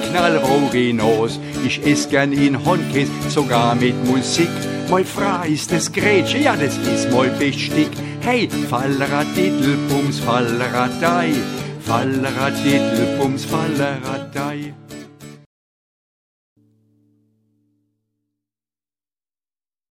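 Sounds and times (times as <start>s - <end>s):
folk song in dialect: 0.0s - 14.8s.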